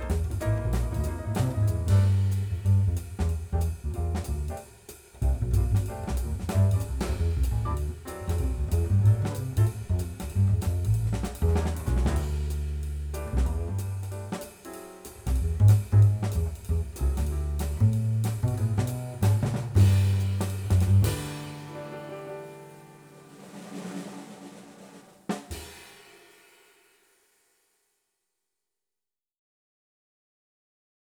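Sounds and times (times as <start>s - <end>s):
bass: 0.0s - 24.0s, 25.3s - 26.0s.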